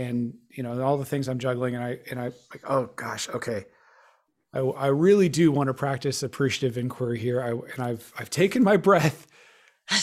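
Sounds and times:
speech: 0:00.0 - 0:03.8, 0:04.5 - 0:10.0
person inhaling: 0:03.7 - 0:04.4, 0:09.3 - 0:09.9.

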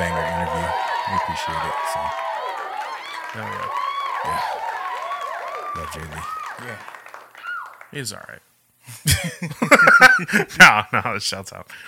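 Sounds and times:
hosts clapping hands: 0:00.0 - 0:08.2
speech: 0:01.3 - 0:02.2, 0:03.3 - 0:04.7, 0:05.7 - 0:07.0, 0:07.9 - 0:11.8.

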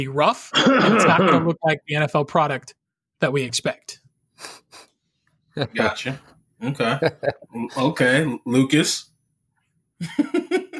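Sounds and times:
speech: 0:00.0 - 0:04.6, 0:05.6 - 0:09.1, 0:10.0 - 0:10.6
person coughing: 0:00.5 - 0:01.6
laughter: 0:06.7 - 0:07.7, 0:10.0 - 0:10.7.

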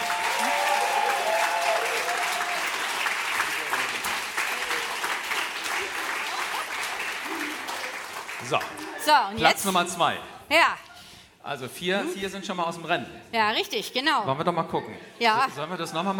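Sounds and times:
audience applause: 0:00.0 - 0:09.2
speech: 0:08.5 - 0:16.1.

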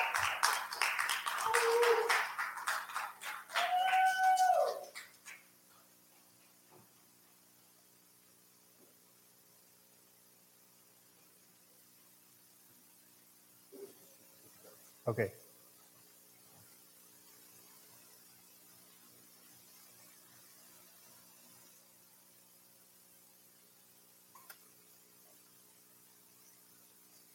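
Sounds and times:
audience round of applause: 0:00.0 - 0:05.4
speech: 0:15.1 - 0:15.4.

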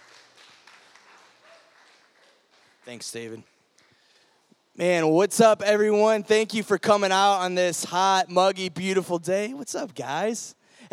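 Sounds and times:
audience applause: 0:00.0 - 0:03.4
speech: 0:02.8 - 0:03.5, 0:04.8 - 0:10.9.

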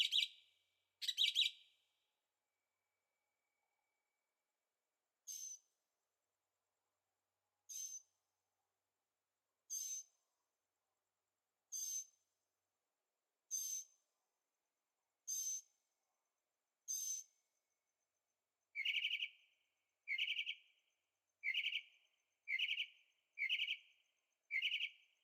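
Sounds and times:
bird calls: 0:00.0 - 0:00.4, 0:01.0 - 0:01.6, 0:18.8 - 0:19.4, 0:20.1 - 0:20.6, 0:21.4 - 0:21.9, 0:22.5 - 0:23.9, 0:24.5 - 0:25.0.

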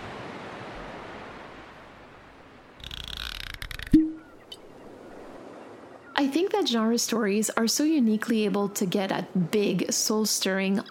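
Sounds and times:
ocean waves washing onto a shore: 0:00.0 - 0:10.8
short tonal chirp: 0:03.8 - 0:04.5
speech: 0:06.2 - 0:10.8.

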